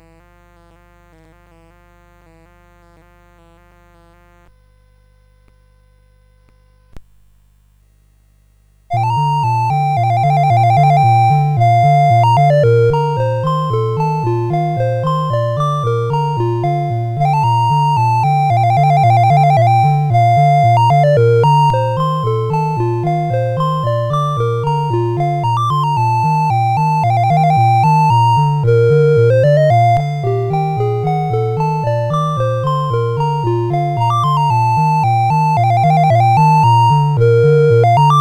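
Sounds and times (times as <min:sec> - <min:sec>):
CSG 8580 sound chip: 0:08.9 - 0:38.1.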